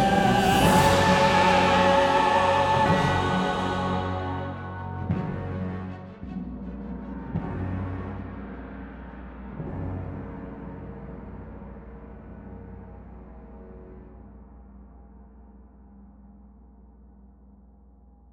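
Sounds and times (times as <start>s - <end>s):
alto bass: 0.0s - 6.6s.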